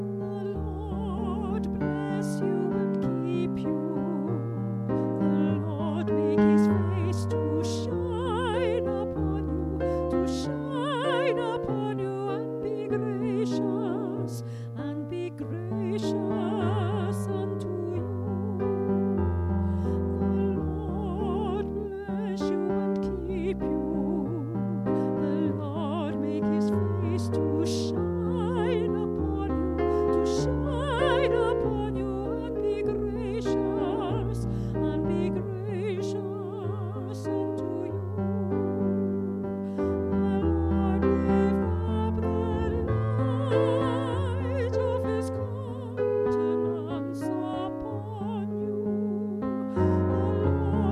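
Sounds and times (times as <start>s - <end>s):
soprano choir singing: 0.1s - 50.9s.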